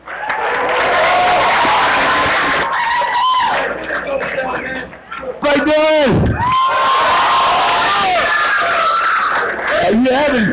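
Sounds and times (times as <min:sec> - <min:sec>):
concert audience applause and cheering for the sound man: 0:00.0 - 0:05.3, 0:06.2 - 0:10.5
whoops and shouts: 0:00.2 - 0:03.7, 0:06.3 - 0:09.4.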